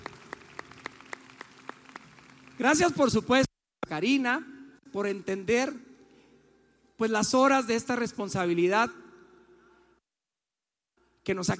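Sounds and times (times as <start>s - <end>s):
audience applause: 0.0s - 2.8s
speech: 2.6s - 5.9s, 7.0s - 9.0s, 11.2s - 11.5s.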